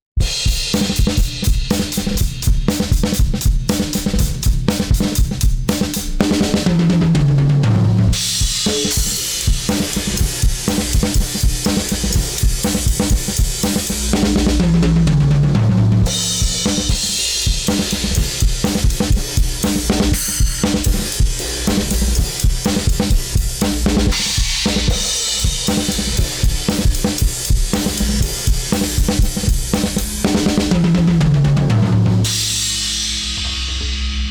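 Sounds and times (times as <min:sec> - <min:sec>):
drums: 0:00.1 - 0:34.2.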